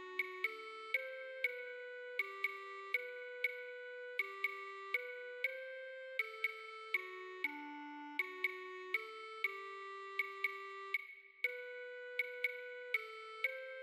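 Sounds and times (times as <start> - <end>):
percussion: 0.2 - 13.7.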